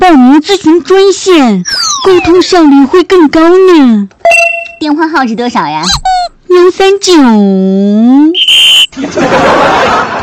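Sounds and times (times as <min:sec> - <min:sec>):
speech: 0:00.4 - 0:08.3, 0:09.0 - 0:10.2
whistling: 0:08.4 - 0:08.9
laughter: 0:08.9 - 0:10.2.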